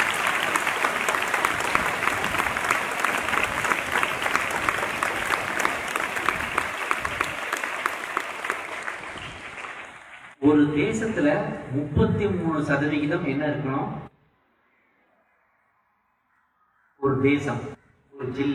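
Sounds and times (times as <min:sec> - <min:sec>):
audience applause: 0:00.0 - 0:10.4
speech: 0:10.6 - 0:14.0, 0:17.2 - 0:17.7, 0:18.3 - 0:18.5.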